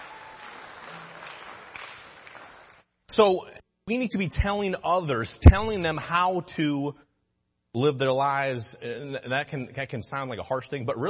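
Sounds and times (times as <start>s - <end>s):
audience applause: 0.0s - 2.8s
speech: 3.2s - 7.0s, 7.7s - 11.0s.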